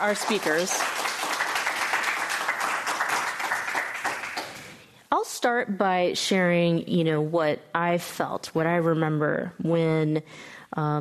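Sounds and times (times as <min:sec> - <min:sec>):
speech: 0:00.0 - 0:01.1, 0:05.4 - 0:10.9
audience applause: 0:00.0 - 0:04.8.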